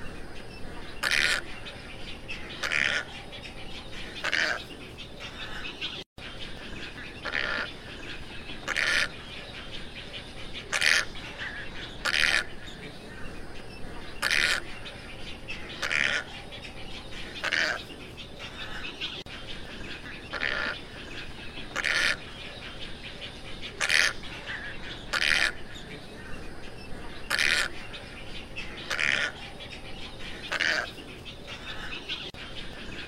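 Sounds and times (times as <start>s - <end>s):
tricolored heron squawks: 1.0s - 1.7s, 2.3s - 3.3s, 4.0s - 5.9s, 6.8s - 9.3s, 10.6s - 12.8s, 14.2s - 16.7s, 17.4s - 19.2s, 19.9s - 22.4s, 23.6s - 26.0s, 27.1s - 29.6s, 30.4s - 32.2s.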